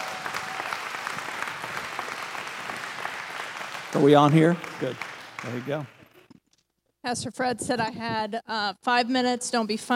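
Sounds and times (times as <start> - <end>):
church congregation applauding to welcome a speaker: 0.0 - 6.3
speech: 3.9 - 6.0, 7.0 - 9.9.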